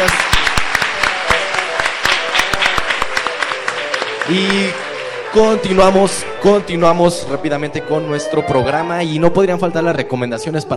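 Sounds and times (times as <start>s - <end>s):
audience applause: 0.0s - 7.1s
speech: 4.3s - 10.7s.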